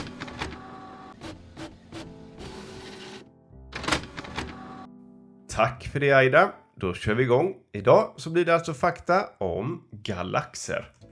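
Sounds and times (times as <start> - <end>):
printer printing out pages: 0.0 - 4.9
speech: 5.6 - 11.0.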